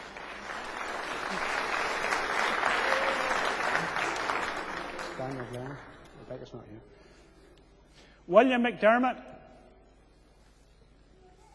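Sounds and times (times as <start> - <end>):
audience applause: 0.0 - 6.0
speech: 6.5 - 7.0, 8.3 - 9.3.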